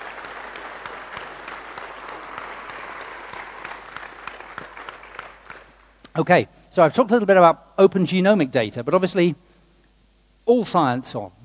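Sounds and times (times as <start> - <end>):
audience applause: 0.0 - 5.8
speech: 6.2 - 9.4, 10.5 - 11.4.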